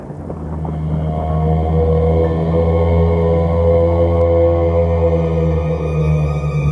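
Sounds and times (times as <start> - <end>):
deep foghorn-like moan from the fog: 0.0 - 6.6.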